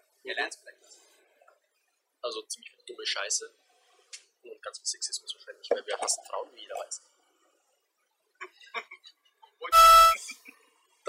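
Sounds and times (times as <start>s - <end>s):
speech: 0.2s - 1.1s, 2.2s - 7.2s, 8.4s - 10.4s
censor bleep over a word: 9.7s - 10.2s.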